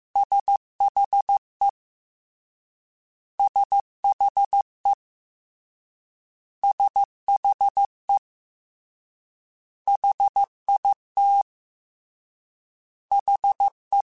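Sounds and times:
Morse code CW code groups of mixed three-letter contrasts: 0.2s - 1.4s, 3.4s - 5.0s, 6.6s - 8.2s, 9.9s - 11.4s, 13.1s - 14.0s.

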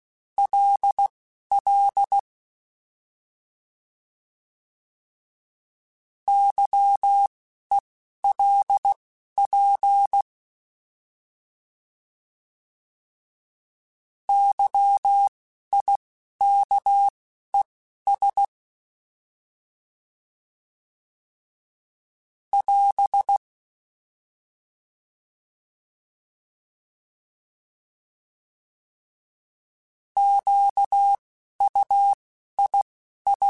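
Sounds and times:
Morse code CW code groups: 0.4s - 2.2s, 6.3s - 10.2s, 14.3s - 17.1s, 18.1s - 18.5s, 22.5s - 23.4s, 30.2s - 33.4s.

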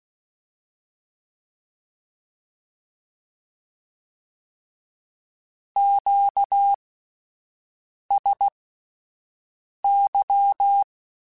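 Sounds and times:
Morse code Q calls in CW code groups: 5.8s - 6.8s, 8.1s - 8.5s, 9.9s - 10.9s.

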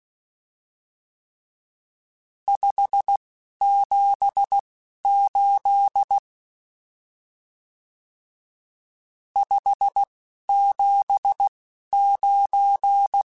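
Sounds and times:
Morse code CW code groups: 2.5s - 6.2s, 9.4s - 13.3s.

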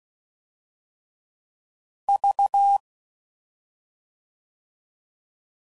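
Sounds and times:
Morse code CW code groups at 5 WPM: 2.2s - 2.8s.

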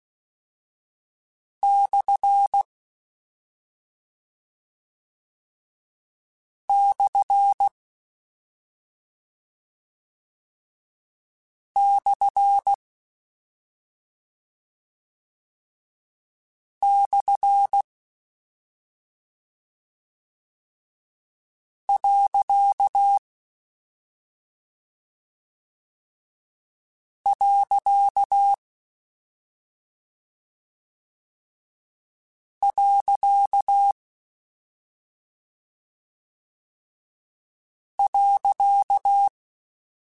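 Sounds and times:
Morse code CW code groups: 1.6s - 2.6s, 6.7s - 7.7s, 11.8s - 12.8s, 16.8s - 17.8s, 22.0s - 23.2s, 27.3s - 28.6s, 32.6s - 34.0s, 38.0s - 39.3s.

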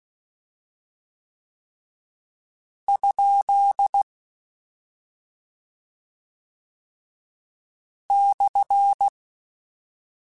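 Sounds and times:
Morse code beeps: 2.9s - 4.0s, 8.1s - 9.1s.

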